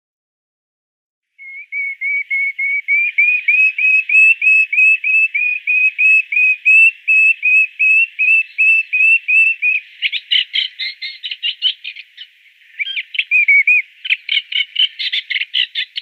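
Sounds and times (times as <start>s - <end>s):
moustached warbler chattering song of scratchy and whistled notes: 1.5s - 16.0s.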